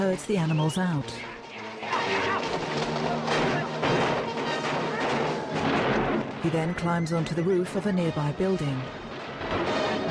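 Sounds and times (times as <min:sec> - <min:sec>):
speech: 0:00.0 - 0:02.0, 0:06.4 - 0:09.7
gunfire in a film battle between revolutionaries and soldiers: 0:01.5 - 0:06.4, 0:09.0 - 0:10.1
crashing blasts in a film battle: 0:01.7 - 0:06.7, 0:08.9 - 0:10.1.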